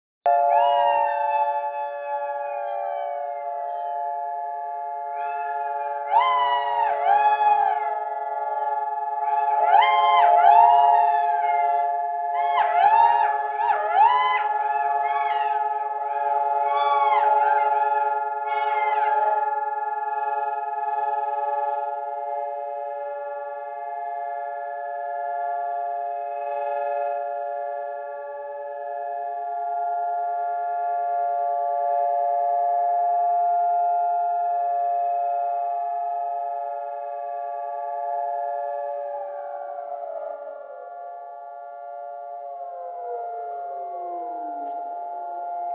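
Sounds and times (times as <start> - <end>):
sirens: 0.2 - 45.7
jackals howling: 0.3 - 4.2, 5.1 - 21.8, 42.6 - 44.8.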